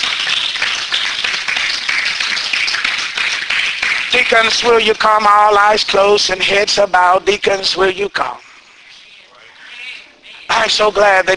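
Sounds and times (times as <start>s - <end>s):
audience clapping hands: 0.0s - 7.2s
speech: 4.1s - 8.5s, 10.6s - 11.3s.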